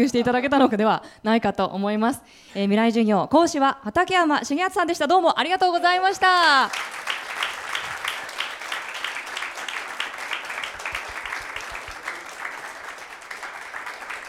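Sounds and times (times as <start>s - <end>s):
speech: 0.0s - 7.2s
audience applause: 6.4s - 14.2s.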